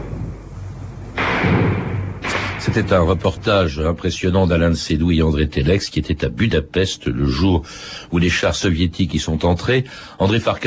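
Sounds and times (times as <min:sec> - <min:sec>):
machine-gun bullets striking a wall: 0:01.2 - 0:03.0
speech: 0:02.6 - 0:10.6.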